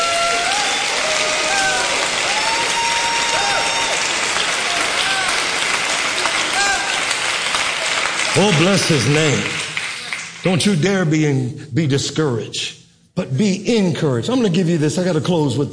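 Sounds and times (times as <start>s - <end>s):
audience clapping hands: 0.0s - 11.0s
speech: 8.4s - 9.6s, 10.4s - 15.7s.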